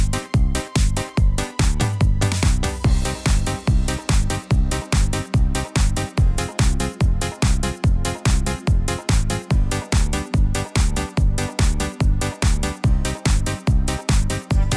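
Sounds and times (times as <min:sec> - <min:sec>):
disco style music on a Yamaha Genos keyboard: 0:00.0 - 0:14.7.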